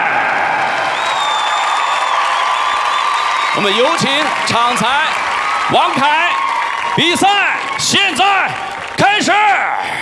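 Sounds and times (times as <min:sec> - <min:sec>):
crowd applauding: 0:00.0 - 0:10.0
thin high whistle: 0:00.9 - 0:04.0
speech: 0:03.6 - 0:06.4, 0:07.0 - 0:10.0.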